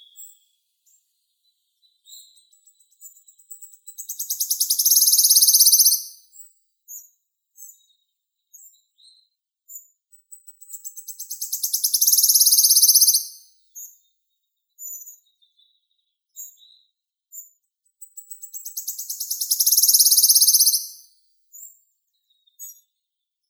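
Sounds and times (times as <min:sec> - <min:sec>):
Phylloscopus sibilatrix wood warbler singing: 0:03.9 - 0:06.2, 0:10.9 - 0:13.4, 0:18.6 - 0:21.0.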